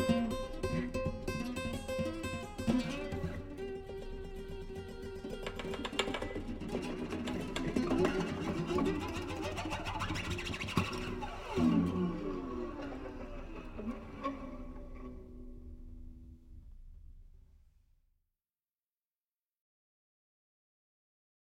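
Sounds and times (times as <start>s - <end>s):
improvised music: 0.0s - 12.8s.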